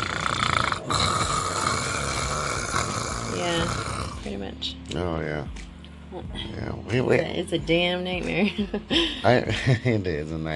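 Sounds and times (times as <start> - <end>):
loud snoring: 0.0 - 4.4
speech: 3.5 - 10.5.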